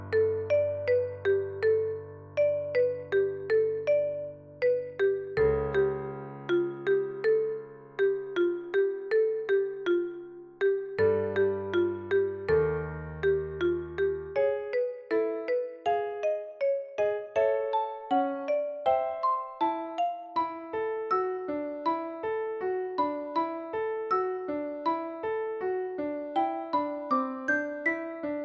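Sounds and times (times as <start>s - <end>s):
marimba: 0.0s - 21.4s
piano: 0.0s - 28.4s.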